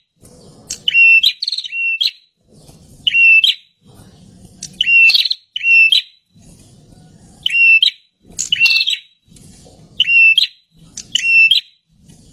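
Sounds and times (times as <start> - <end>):
bird calling with short whistled notes: 0.7 - 2.3, 3.0 - 3.7, 4.8 - 6.2, 7.4 - 9.2, 10.0 - 11.8.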